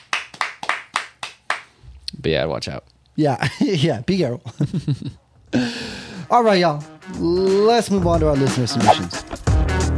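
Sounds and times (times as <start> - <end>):
round of applause: 0.0 - 1.6
speech: 2.2 - 5.7, 6.3 - 9.2.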